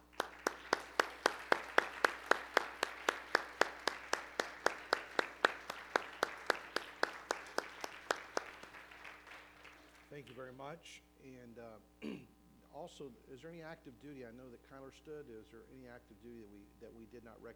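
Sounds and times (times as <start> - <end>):
audience applause for veterans: 0.0 - 10.5
speech: 10.2 - 17.5.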